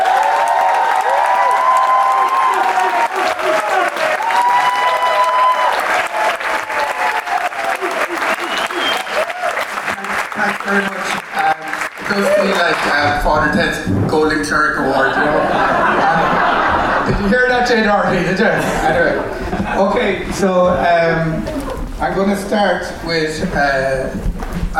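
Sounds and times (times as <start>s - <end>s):
audience applause and cheering welcoming a wedding photographer to the stage: 0.0s - 17.1s
laughter: 7.3s - 9.4s, 14.8s - 21.7s
speech: 17.2s - 24.7s.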